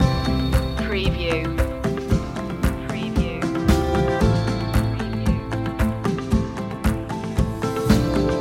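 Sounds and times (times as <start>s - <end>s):
music loop: 0.0s - 8.4s.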